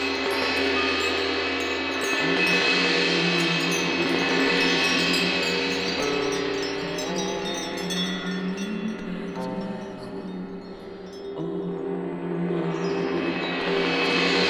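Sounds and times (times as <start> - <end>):
mantra chanting: 0.2 - 14.4.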